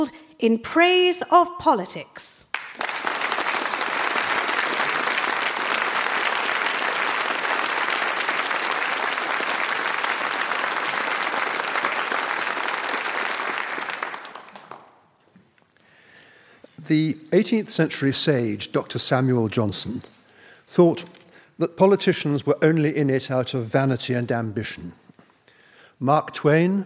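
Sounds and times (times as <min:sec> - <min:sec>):
speech: 0:00.0 - 0:02.5, 0:16.9 - 0:25.0, 0:26.0 - 0:26.8
large crowd applause welcoming the 2019 BBC lecturer: 0:02.5 - 0:15.0.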